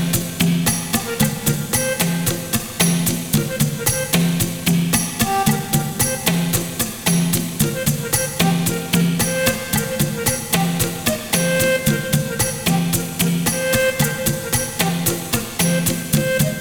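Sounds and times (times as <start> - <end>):
welcome drum playing: 0.0 - 16.5.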